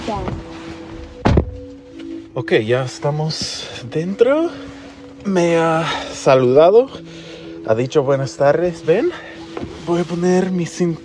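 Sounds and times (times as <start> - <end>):
self-driving car door unlocking and opening: 1.2 - 2.1
speech: 2.4 - 11.0.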